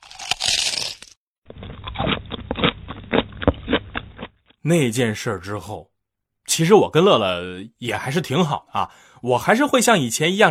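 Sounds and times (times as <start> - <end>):
person chewing crispy rice crust: 0.0 - 4.3
speech: 4.6 - 5.9, 6.5 - 10.4.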